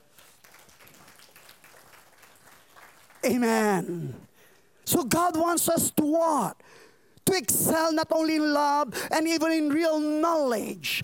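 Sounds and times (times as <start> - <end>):
audience clapping: 0.0 - 4.4
speech: 3.2 - 4.2, 4.9 - 6.6, 7.3 - 11.0.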